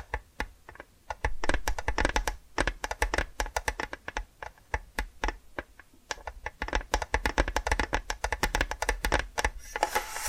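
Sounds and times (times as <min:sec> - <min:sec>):
tapping: 0:00.0 - 0:10.0.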